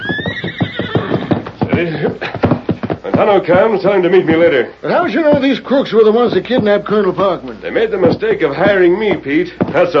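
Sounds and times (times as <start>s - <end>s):
Silver the Lone Ranger's horse whinnying: 0.0s - 2.1s
hooves clattering: 0.0s - 9.9s
speech: 1.8s - 2.4s, 3.2s - 9.9s.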